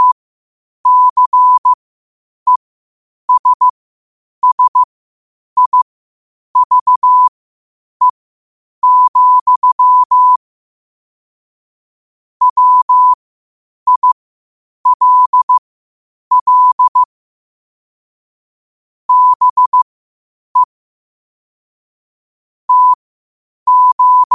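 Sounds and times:
morse code at 5 wpm: 0.9 - 1.8, 3.3 - 3.7, 4.4 - 4.9, 5.6 - 5.8, 6.6 - 7.3, 8.8 - 10.4, 12.4 - 13.2, 13.9 - 14.2, 14.9 - 15.6, 16.3 - 17.1, 19.1 - 19.8, 22.7 - 23.0, 23.7 - 24.3.

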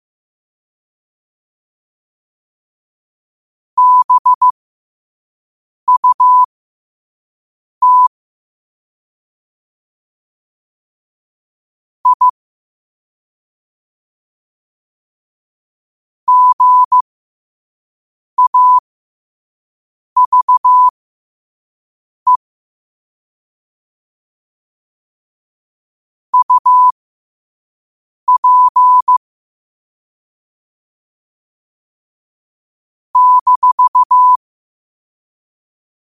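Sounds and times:
morse code at 5 wpm: 3.8 - 4.5, 5.9 - 6.5, 7.8 - 8.1, 12.0 - 12.4, 16.3 - 17.0, 18.4 - 18.8, 20.2 - 20.9, 26.4 - 26.9, 28.3 - 29.2, 33.2 - 34.4.

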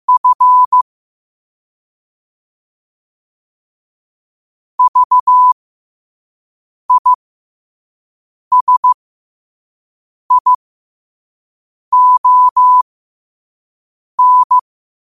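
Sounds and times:
morse code at 5 wpm: 0.1 - 0.8, 4.8 - 5.6, 6.9 - 7.2, 8.5 - 9.0, 10.3 - 10.6, 11.9 - 12.8, 14.2 - 14.6.

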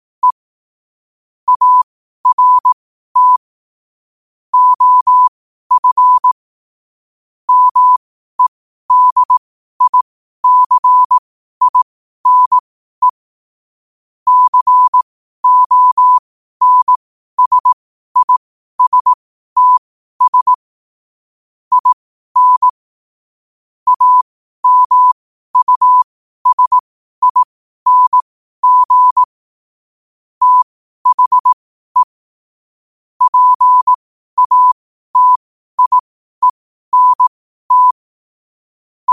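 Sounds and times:
morse code at 5 wpm: 1.5 - 3.4, 4.6 - 6.4, 7.5 - 13.2, 14.3 - 20.6, 21.7 - 22.7, 23.9 - 29.4, 30.4 - 32.2, 33.2 - 38.0.

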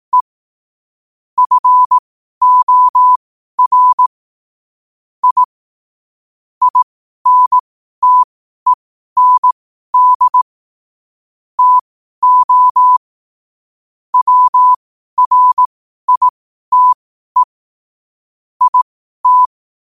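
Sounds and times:
morse code at 5 wpm: 1.4 - 4.1, 5.2 - 5.5, 6.7 - 8.3, 9.2 - 10.4, 11.6 - 13.0, 14.2 - 17.5, 18.6 - 19.5.

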